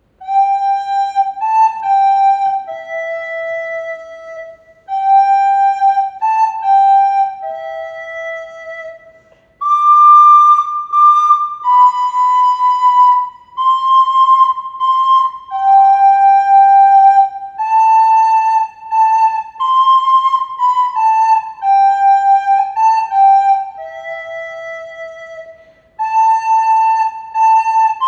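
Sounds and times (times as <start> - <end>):
recorder playing a Christmas carol: 0.0 - 28.0.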